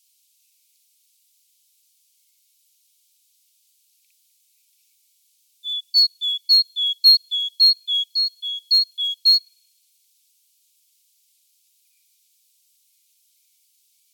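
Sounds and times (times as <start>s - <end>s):
great tit calling: 5.6s - 9.4s.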